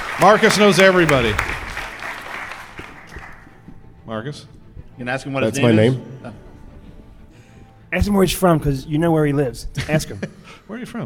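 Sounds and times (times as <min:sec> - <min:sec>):
crowd applause: 0:00.0 - 0:03.6
speech: 0:00.2 - 0:01.5, 0:04.1 - 0:06.5, 0:07.9 - 0:11.0.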